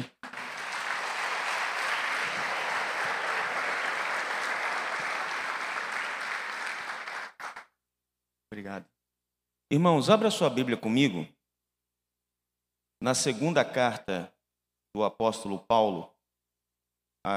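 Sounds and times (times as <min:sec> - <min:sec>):
audience applause: 0:00.0 - 0:07.6
speech: 0:08.6 - 0:08.9, 0:09.7 - 0:11.4, 0:13.0 - 0:16.1.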